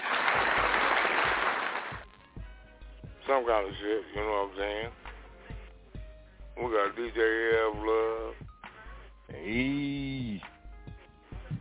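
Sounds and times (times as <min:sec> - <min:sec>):
applause sound effect: 0:00.0 - 0:02.1
speech: 0:03.3 - 0:05.0, 0:06.6 - 0:08.5, 0:09.3 - 0:10.5.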